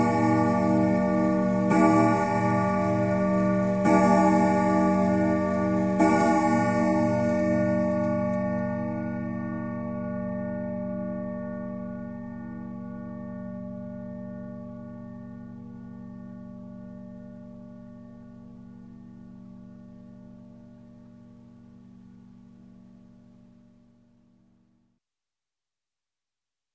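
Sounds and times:
grandfather clock chime striking: 0.0s - 10.4s.

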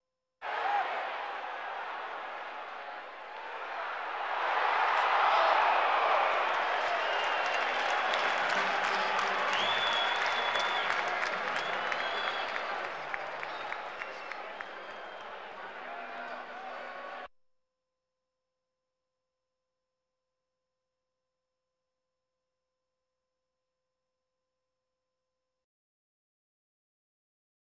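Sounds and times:
sports crowd: 0.4s - 17.3s.

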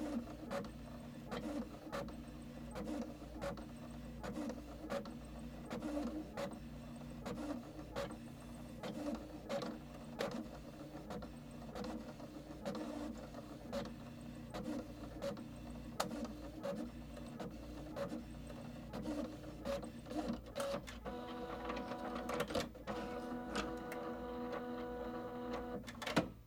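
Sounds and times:
home and office laser printer printing: 0.0s - 26.4s.

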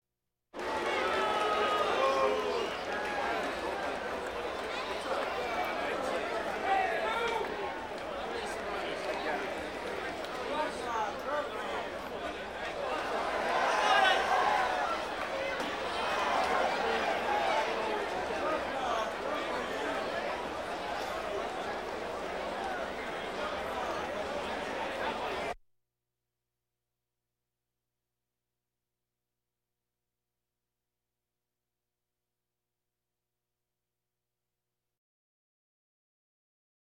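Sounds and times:
crowds: 0.6s - 25.6s.

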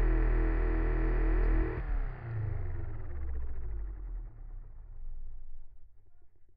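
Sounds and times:
mini fan running: 0.1s - 5.7s.

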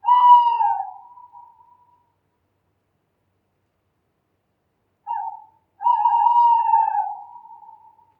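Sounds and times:
owl: 0.0s - 2.1s, 5.1s - 8.1s.

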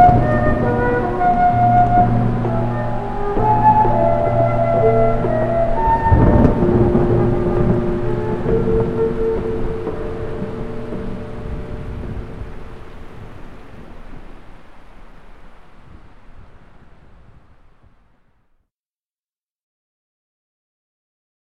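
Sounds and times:
eerie music: 0.0s - 13.8s.

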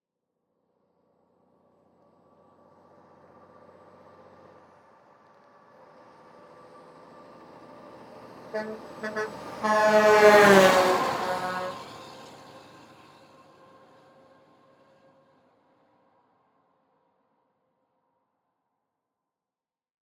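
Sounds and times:
Mack semi truck: 1.2s - 16.3s.

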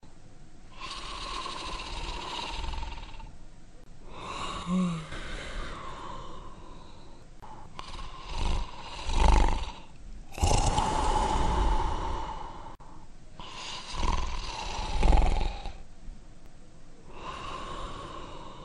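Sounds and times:
monster sleeping: 0.7s - 3.3s, 4.0s - 12.8s, 13.4s - 15.8s, 17.1s - 18.6s.

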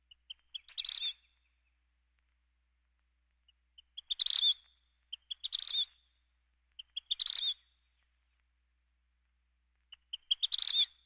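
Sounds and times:
birds: 0.0s - 2.4s, 3.4s - 8.5s, 9.8s - 11.0s.

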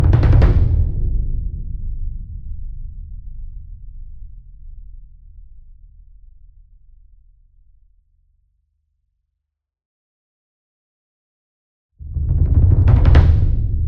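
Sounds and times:
40 inch concert bass drum roll with soft beater: 0.0s - 1.6s, 12.0s - 13.8s.

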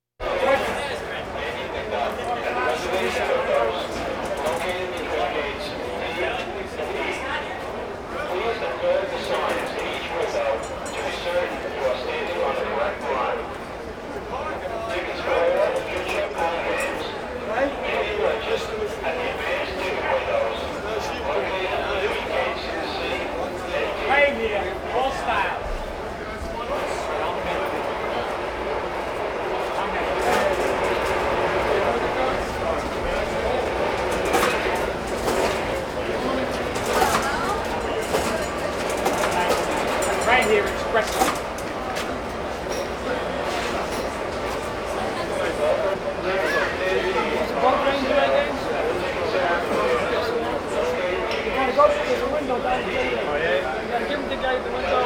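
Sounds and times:
crowds: 0.2s - 55.0s.

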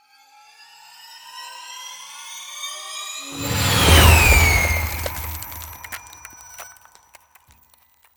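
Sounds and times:
ice spell cold whooshes: 3.3s - 6.5s.

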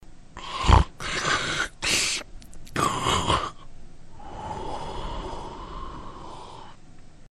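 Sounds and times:
sleepy monster: 0.4s - 2.2s, 2.8s - 3.6s, 4.2s - 6.8s.

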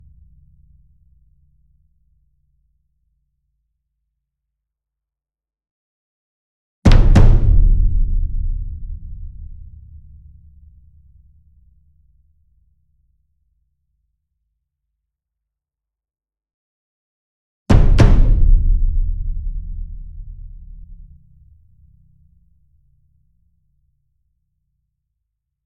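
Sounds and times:
ensemble concert bass drum, double: 6.9s - 10.2s, 17.7s - 21.3s.

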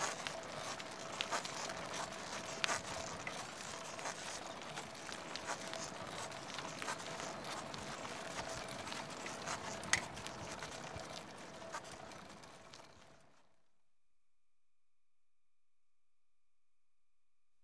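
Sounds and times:
cycling: 0.0s - 13.4s.

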